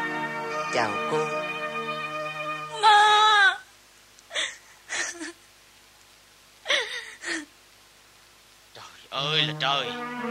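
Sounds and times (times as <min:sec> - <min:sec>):
speech: 0:00.7 - 0:01.5, 0:09.4 - 0:10.2
person sobbing and whimpering: 0:02.7 - 0:03.6, 0:04.3 - 0:05.4, 0:06.6 - 0:07.5.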